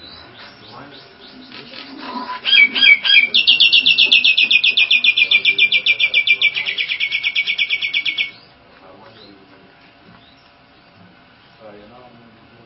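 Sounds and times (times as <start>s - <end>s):
Nias hill myna song with harsh rattling notes and chatter: 2.4s - 8.3s.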